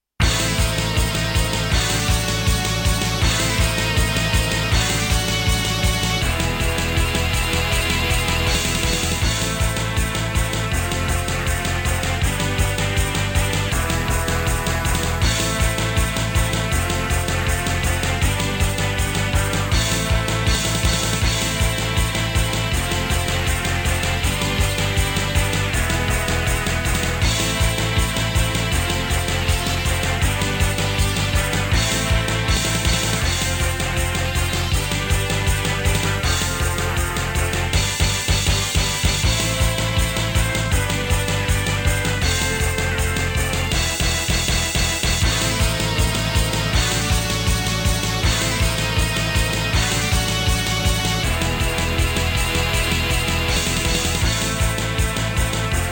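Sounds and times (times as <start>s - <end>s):
intense music: 0.2s - 55.9s.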